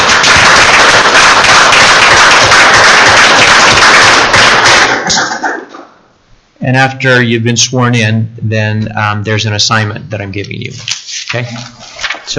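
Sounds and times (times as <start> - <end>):
crowd applause: 0.0 - 5.3
speech: 6.6 - 12.3.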